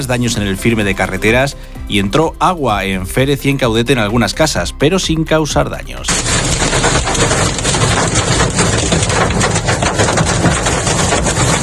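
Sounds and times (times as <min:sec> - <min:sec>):
speech: 0:00.0 - 0:07.6
hail falling in Hellín: 0:06.1 - 0:11.6.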